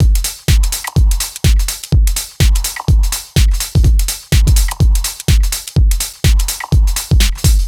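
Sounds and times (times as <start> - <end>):
lounge house music loop: 0.0 - 7.6.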